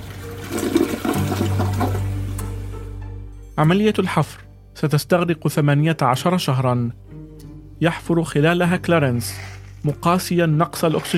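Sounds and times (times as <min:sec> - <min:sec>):
toilet flushing: 0:00.0 - 0:02.2
speech: 0:03.6 - 0:07.2, 0:07.8 - 0:11.1.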